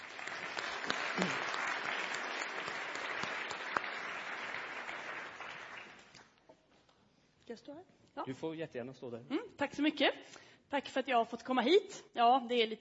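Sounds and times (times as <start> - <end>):
audience applause: 0.0 - 6.3
speech: 1.2 - 1.4, 7.6 - 12.8.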